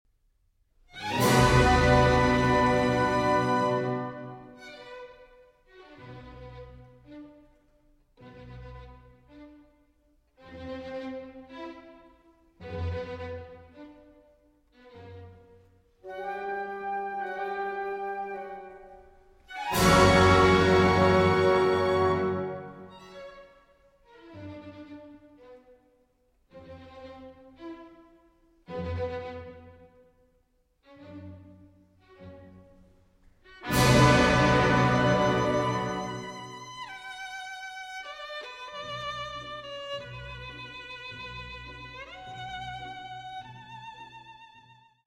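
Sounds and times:
violin concerto in D major for violin and orchestra: 0.9s - 30.1s, 30.8s - 45.0s.

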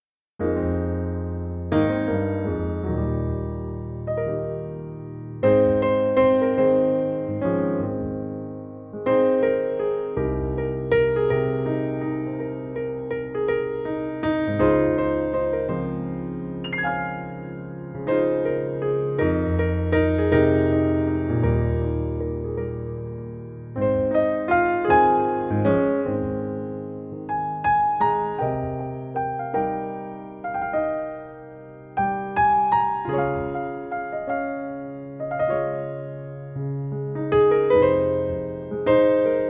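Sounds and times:
piano music: 0.4s - 39.4s.

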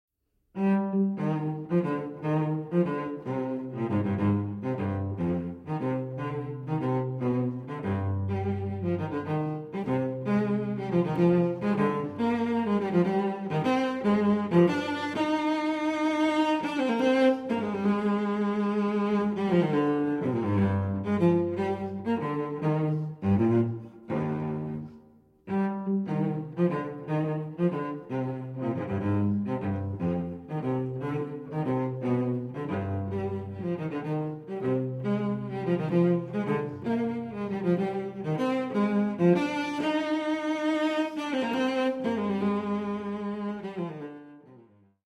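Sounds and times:
cello piece: 0.5s - 45.0s.

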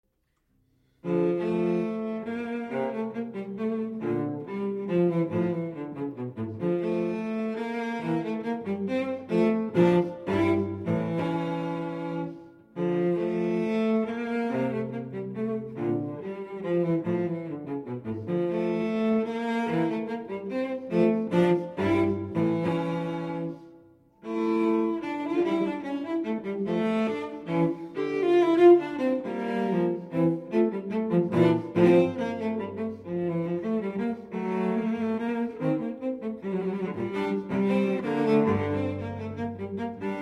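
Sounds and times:
solo cello suite: 0.8s - 40.2s.

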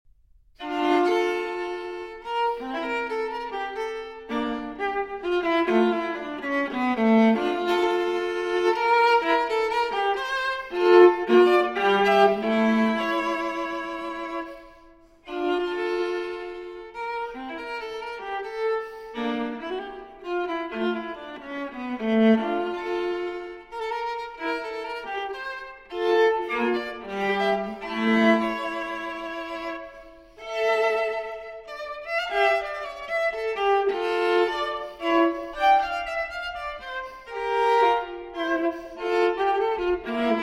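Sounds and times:
viola playing a cello suite transcription: 0.6s - 40.4s.

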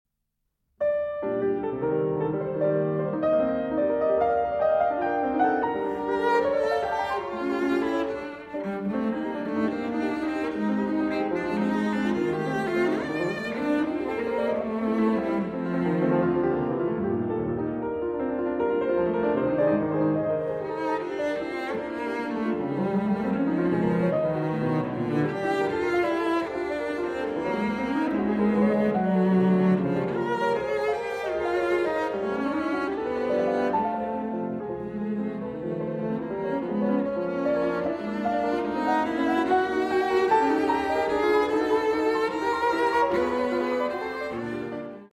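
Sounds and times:
lively sonata movement in G minor: 0.8s - 45.1s.

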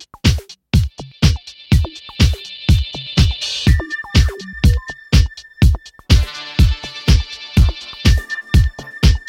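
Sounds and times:
extended disco club music with vocals: 0.2s - 9.2s.

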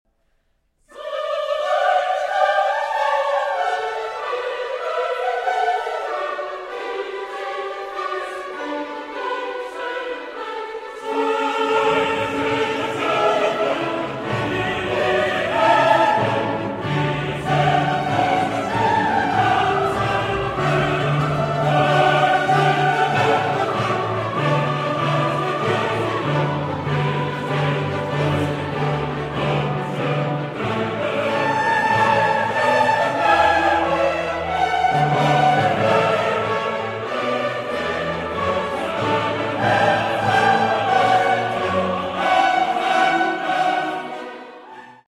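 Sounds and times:
symphony with choir: 0.8s - 45.0s.

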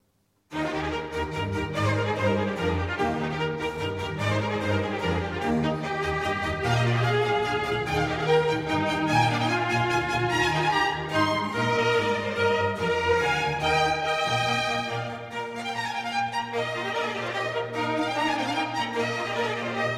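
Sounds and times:
trumpet concerto: 0.5s - 19.9s.

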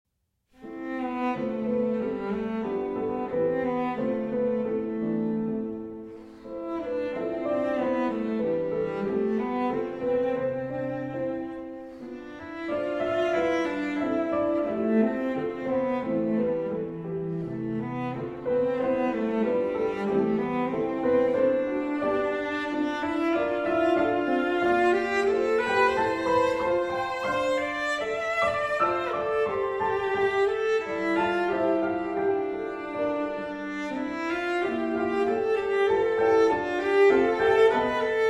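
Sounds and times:
cello: 0.5s - 38.2s
piano: 0.5s - 38.2s.

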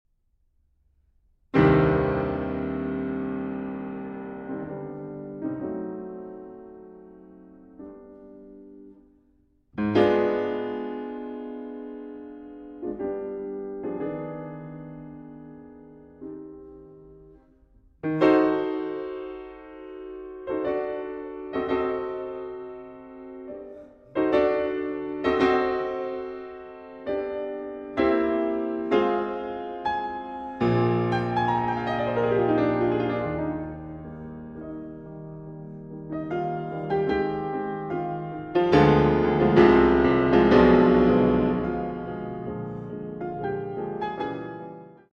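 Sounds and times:
piano sonata: 1.2s - 45.1s.

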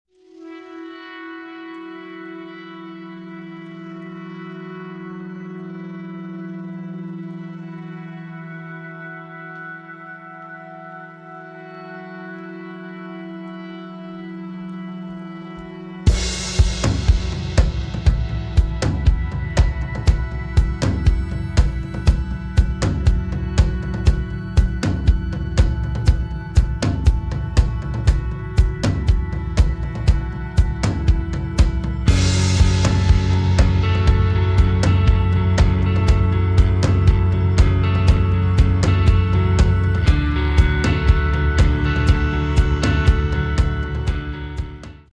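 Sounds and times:
haunting echo: 12.1s - 44.8s.

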